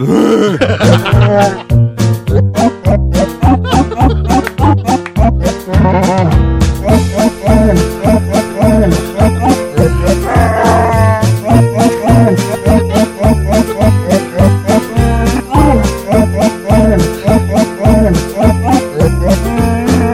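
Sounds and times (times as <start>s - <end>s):
laughter: 0.0s - 20.1s
musical backing: 0.0s - 20.1s
growling voice imitating Chewbacca singing a Christmas song: 6.0s - 20.1s.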